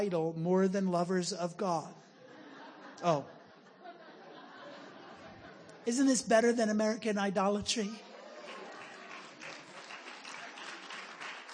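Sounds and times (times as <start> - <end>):
speech: 0.0 - 2.1, 3.0 - 3.4, 5.8 - 8.1
laughter: 2.2 - 5.9, 8.0 - 11.0
weak audience clapping: 8.2 - 11.5.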